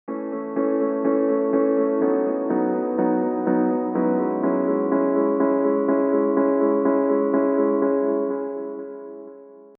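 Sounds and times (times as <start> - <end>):
piano: 0.1 - 9.7.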